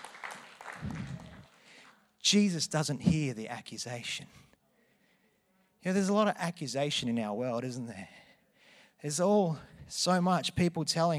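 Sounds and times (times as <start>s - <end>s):
audience clapping: 0.0s - 2.0s
speech: 2.3s - 4.5s, 5.8s - 8.2s, 9.0s - 11.1s.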